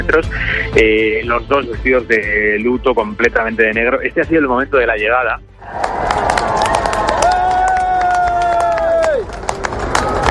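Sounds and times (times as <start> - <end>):
speech: 0.0 - 6.2
large crowd outside palace cheering and shouting: 5.6 - 10.2
scattered claps: 5.6 - 10.2.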